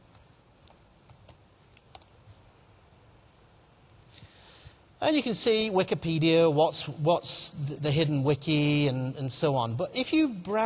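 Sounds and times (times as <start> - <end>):
steady hiss: 0.0 - 10.6
typing on a computer keyboard: 0.1 - 2.4
speech: 5.0 - 10.6.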